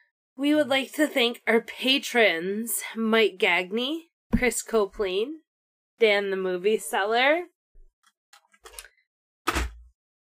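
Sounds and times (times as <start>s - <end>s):
speech: 0.4s - 5.4s, 6.0s - 7.5s
keyboard being dropped with clattering crash: 9.5s - 9.9s.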